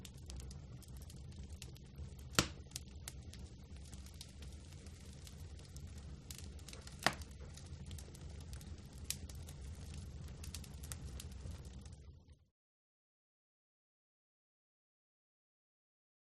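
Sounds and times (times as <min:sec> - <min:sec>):
medium wood fire roaring: 0:00.0 - 0:12.5.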